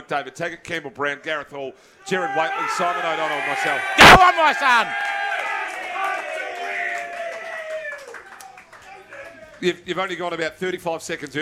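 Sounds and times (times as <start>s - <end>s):
speech: 0.1s - 5.1s, 9.6s - 11.4s
live crowd roaring and cheering: 2.1s - 9.8s.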